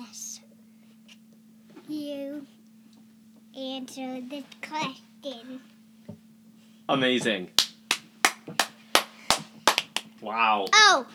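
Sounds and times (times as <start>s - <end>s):
speech: 3.8s - 5.7s, 6.9s - 7.6s, 10.2s - 11.1s
hand claps: 7.6s - 10.2s.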